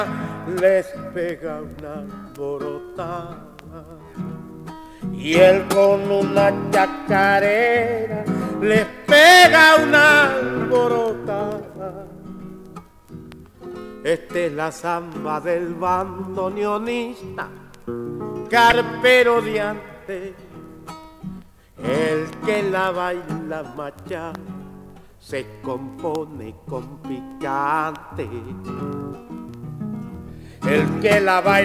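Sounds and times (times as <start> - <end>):
guitar voice: 0.0 - 31.6.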